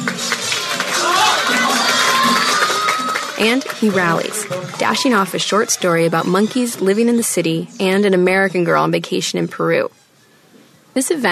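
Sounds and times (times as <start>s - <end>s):
crowd cheering and shouting encouragement: 0.0s - 7.1s
crowd whistles: 1.2s - 3.4s
speech: 3.4s - 10.0s, 11.0s - 11.3s.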